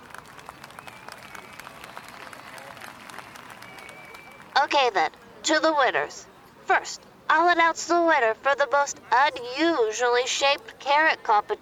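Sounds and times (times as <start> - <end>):
audience applause: 0.0 - 4.5
faint chatter: 0.0 - 11.5
speech: 4.6 - 11.5.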